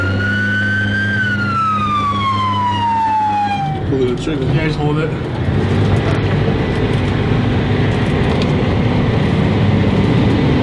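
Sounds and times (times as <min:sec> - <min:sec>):
Ramstein Fire Department fire truck siren wailing: 0:00.0 - 0:04.0
fire truck engine low rumble: 0:00.0 - 0:10.6
speech: 0:04.2 - 0:05.8.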